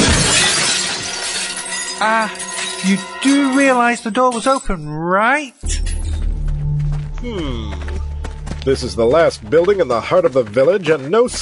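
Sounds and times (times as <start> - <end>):
window glass shattering as someone jumps through: 0.0 - 4.7
speech: 2.0 - 6.0, 7.2 - 8.0, 8.6 - 11.4.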